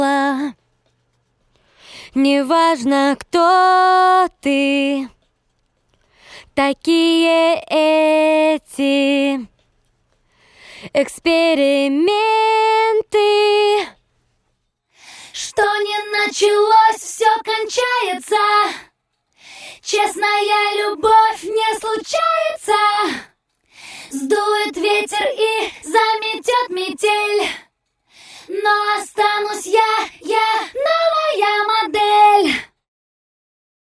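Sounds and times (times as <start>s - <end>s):
a cappella singing: 0.0s - 0.6s, 2.1s - 5.1s, 6.6s - 9.5s, 10.8s - 14.0s, 15.3s - 18.9s, 19.5s - 23.3s, 23.9s - 32.8s.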